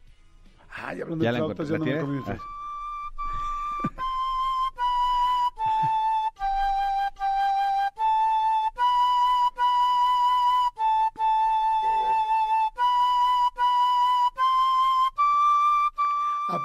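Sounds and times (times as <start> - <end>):
speech: 0.9 - 2.6
flute playing a simple slow melody: 1.1 - 16.6.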